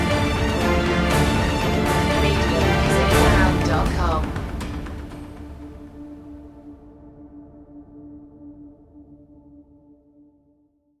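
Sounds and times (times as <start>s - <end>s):
orchestral music mix: 0.0s - 7.0s.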